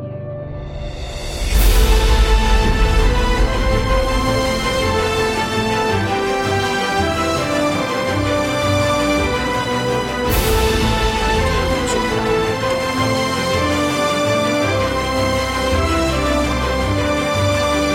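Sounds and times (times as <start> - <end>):
epic orchestral soundtrack without percussion: 0.4 - 17.9.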